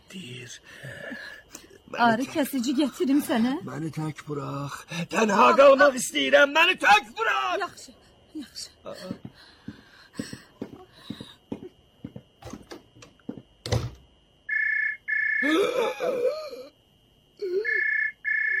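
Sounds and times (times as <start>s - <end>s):
speech: 0.1s - 9.5s
telephone ringing: 14.5s - 15.5s, 17.7s - 18.5s
wavering voice: 17.4s - 17.9s.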